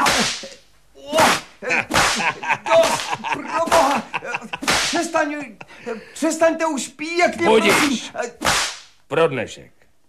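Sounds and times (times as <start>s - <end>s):
whip cracking: 0.0s - 0.6s, 1.2s - 3.9s, 4.6s - 5.1s, 8.4s - 9.0s
laughter: 1.6s - 6.2s
speech: 6.3s - 8.4s, 9.2s - 9.8s.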